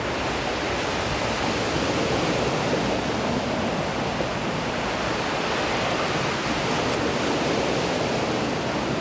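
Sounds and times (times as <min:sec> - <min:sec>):
ocean waves: 0:00.0 - 0:08.9
wind: 0:00.0 - 0:08.9.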